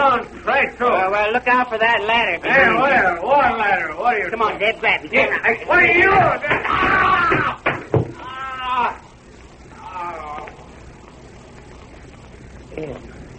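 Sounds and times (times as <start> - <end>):
speech: 0.2 - 7.4, 12.8 - 13.1
barrel dropping on someone's head: 6.2 - 8.2.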